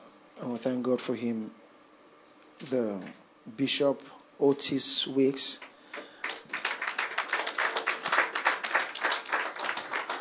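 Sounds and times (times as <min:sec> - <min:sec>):
speech: 0:00.4 - 0:01.6, 0:02.6 - 0:06.1
audience clapping: 0:05.6 - 0:10.1.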